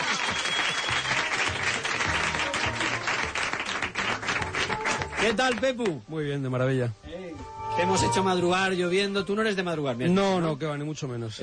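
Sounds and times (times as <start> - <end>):
applause: 0.0 - 6.0
speech: 5.2 - 11.4.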